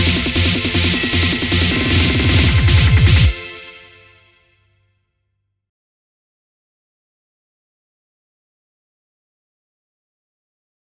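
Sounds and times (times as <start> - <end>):
instrumental music: 0.0 - 4.4.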